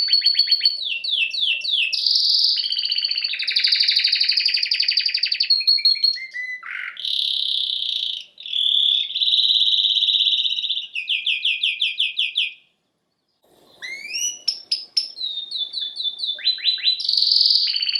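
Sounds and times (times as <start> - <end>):
domestic canary singing: 0.0 - 17.9
faint low noise: 12.6 - 17.8.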